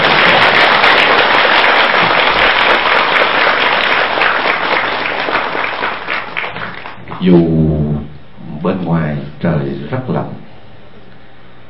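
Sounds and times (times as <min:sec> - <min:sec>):
long loud applause from audience: 0:00.0 - 0:07.1
speech: 0:07.2 - 0:07.9, 0:08.6 - 0:10.5.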